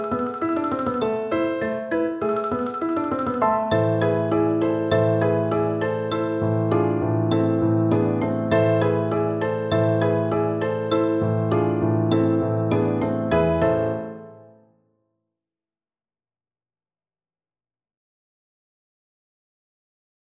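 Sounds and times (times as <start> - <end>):
xylophone melody: 0.0 - 14.2.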